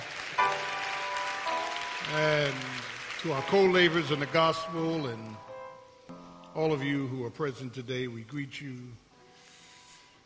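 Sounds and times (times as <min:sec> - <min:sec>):
audience clapping: 0:00.0 - 0:05.4
speech: 0:02.1 - 0:05.5, 0:06.6 - 0:09.0.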